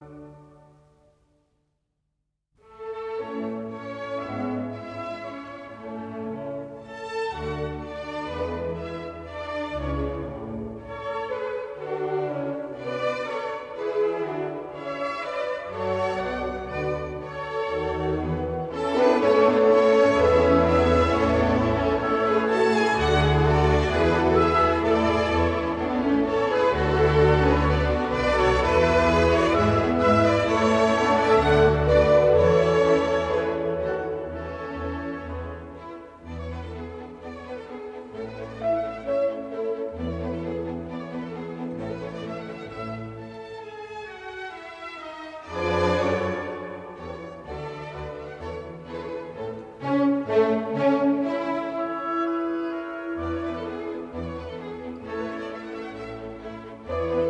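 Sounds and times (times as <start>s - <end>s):
classical serenade andante movement: 0.0s - 1.5s, 2.6s - 57.2s.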